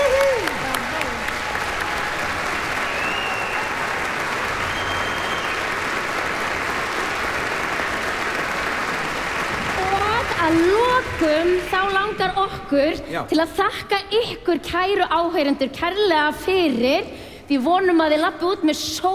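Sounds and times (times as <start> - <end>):
concert audience applause for the conductor and orchestra: 0.0 - 12.6
speech: 12.4 - 19.1.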